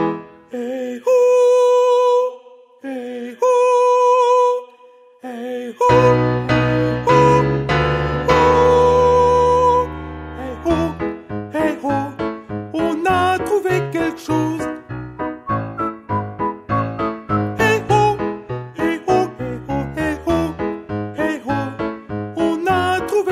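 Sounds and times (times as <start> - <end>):
soprano singing: 0.2 - 23.2.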